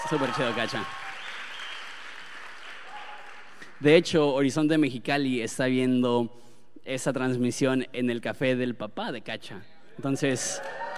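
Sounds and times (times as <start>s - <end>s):
audience applause: 0.0s - 3.8s
speech: 0.1s - 1.0s, 3.8s - 10.8s.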